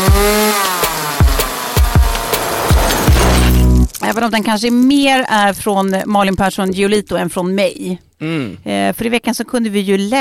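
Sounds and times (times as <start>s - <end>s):
saw cutting wood: 0.0s - 3.9s
speech: 4.1s - 10.1s.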